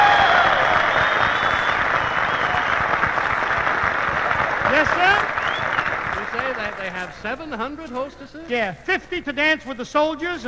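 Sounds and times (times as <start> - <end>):
large evening show audience applause: 0.0 - 7.4
speech: 7.0 - 10.4.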